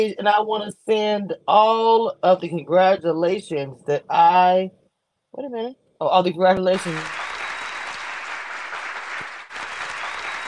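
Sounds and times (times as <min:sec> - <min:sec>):
speech: 0:00.0 - 0:07.2
crowd applause sound effect: 0:06.8 - 0:10.4.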